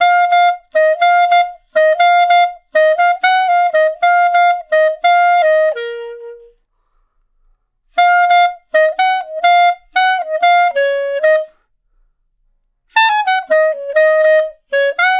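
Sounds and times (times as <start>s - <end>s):
clarinet one shot melody: 0.0s - 6.6s, 7.9s - 11.7s, 12.9s - 15.1s.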